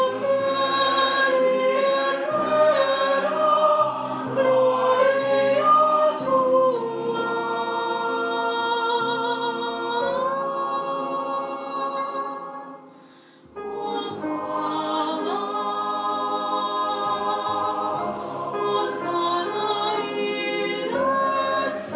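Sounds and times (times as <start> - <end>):
tenor choir singing a mass: 0.0 - 21.9.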